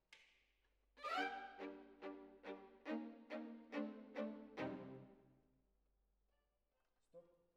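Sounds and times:
violins: 1.0s - 5.2s.

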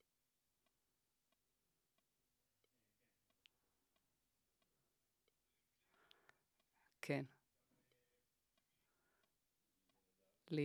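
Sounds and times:
vocals: 5.7s - 9.0s, 9.9s - 10.6s.

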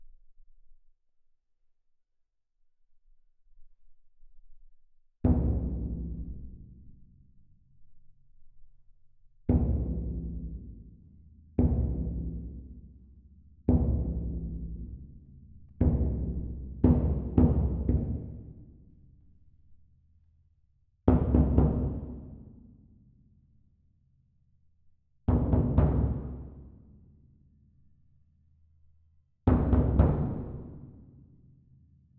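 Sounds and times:
percussion: 5.2s - 8.8s, 9.5s - 20.0s, 21.0s - 23.9s, 25.2s - 28.3s, 29.4s - 32.1s.

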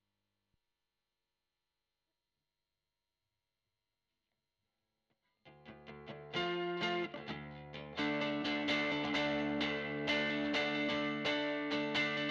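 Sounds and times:
guitar recorded with Royer microphone: 5.4s - 12.2s.

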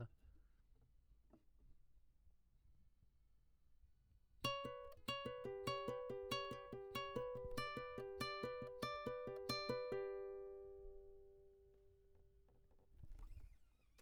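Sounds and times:
classical guitar: 4.4s - 12.2s.

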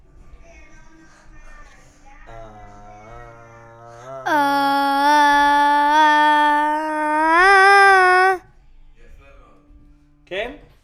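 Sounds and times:
vocals: 4.3s - 8.4s.

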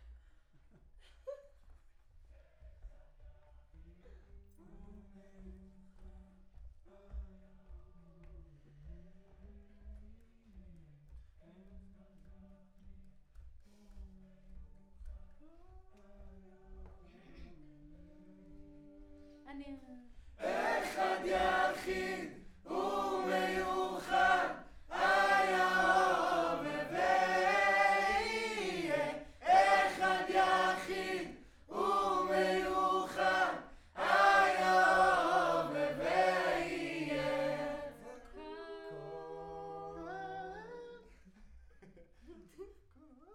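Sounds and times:
choir singing: 20.4s - 40.7s.

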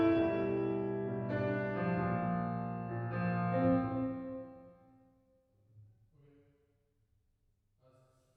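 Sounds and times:
piano: 0.0s - 5.1s.

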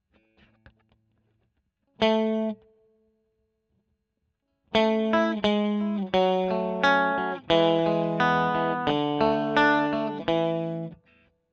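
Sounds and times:
electric guitar recorded with Royer microphone: 2.0s - 2.6s, 4.7s - 11.2s.

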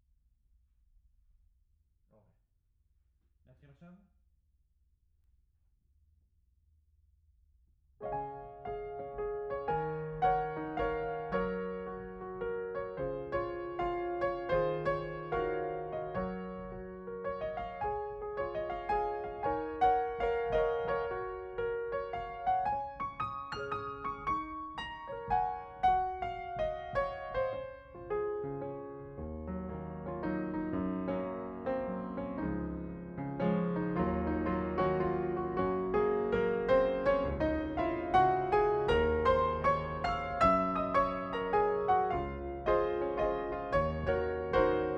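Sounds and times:
piano: 8.0s - 44.9s.

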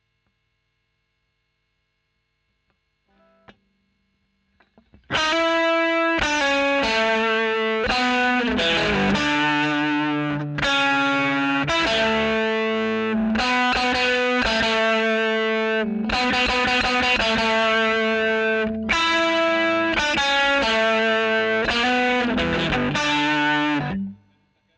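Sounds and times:
overdriven electric guitar recorded with a Royer microphone: 4.5s - 24.2s.

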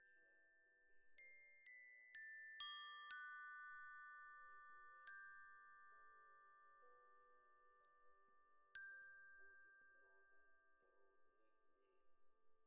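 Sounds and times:
glockenspiel: 1.2s - 7.6s, 8.7s - 11.0s.

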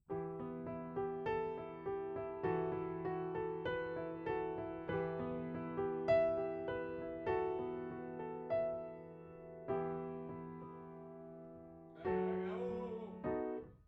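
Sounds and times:
piano note A: 0.1s - 13.8s.

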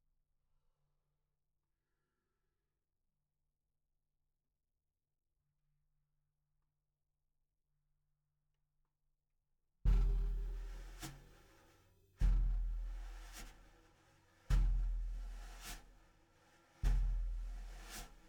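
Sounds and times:
bottom snare drum: 9.9s - 18.2s.

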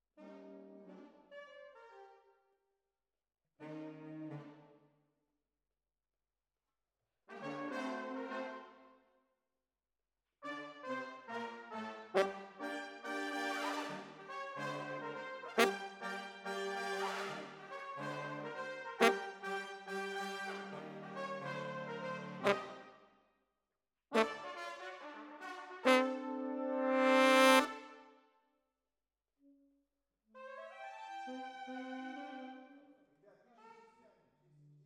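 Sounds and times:
horns: 7.4s - 8.6s, 10.5s - 22.9s, 24.1s - 28.0s.

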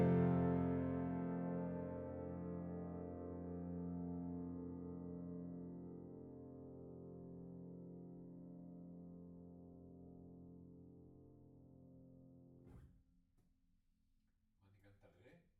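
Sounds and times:
piano note B: 0.0s - 8.2s.

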